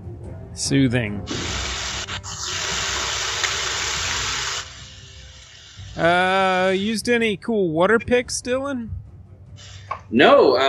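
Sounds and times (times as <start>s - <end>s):
speech: 0.6s - 1.6s, 6.0s - 9.0s, 10.1s - 10.6s
grinding buzz of an electric toothbrush: 1.3s - 6.9s, 9.6s - 9.9s.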